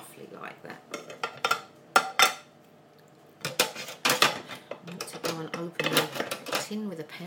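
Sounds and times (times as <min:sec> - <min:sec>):
speech: 0:00.3 - 0:01.0, 0:06.7 - 0:07.2
utensil scraping and knocking against a pan breaking food into chunks: 0:03.4 - 0:06.7.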